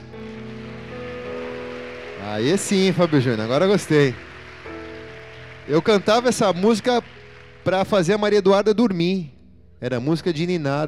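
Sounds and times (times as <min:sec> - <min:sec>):
audience applause: 0:00.0 - 0:08.4
speech: 0:02.2 - 0:04.3, 0:05.7 - 0:10.8.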